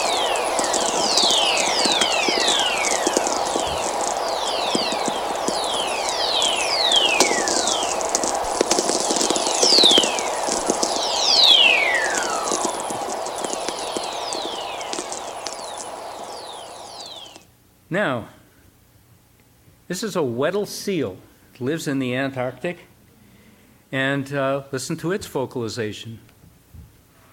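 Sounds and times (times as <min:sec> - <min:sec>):
radio whistlers from thunderstorms on low-frequency radio: 0:00.0 - 0:17.4
crackling radio static: 0:00.0 - 0:17.5
speech: 0:19.9 - 0:22.9, 0:23.9 - 0:26.3.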